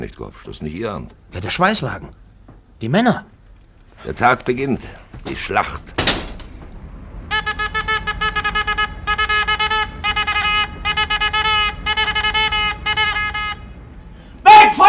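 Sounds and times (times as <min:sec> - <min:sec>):
speech: 0:00.0 - 0:02.2, 0:02.8 - 0:03.3, 0:04.0 - 0:06.1
approaching train low rumble: 0:04.0 - 0:14.6
train horn blaring in rapid stuttering blasts: 0:07.2 - 0:14.3.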